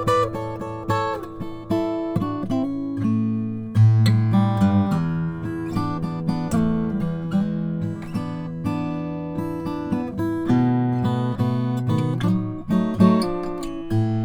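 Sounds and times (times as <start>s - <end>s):
Froggy Bottom R 14 Deluxe mahogany guitar: 0.0s - 14.2s.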